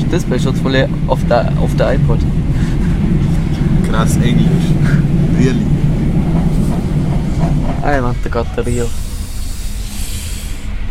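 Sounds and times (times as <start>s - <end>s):
low train carriage rumble: 0.0s - 10.8s
speech: 0.1s - 3.2s, 3.9s - 5.8s, 7.8s - 9.1s
train braking air hiss: 8.8s - 10.8s.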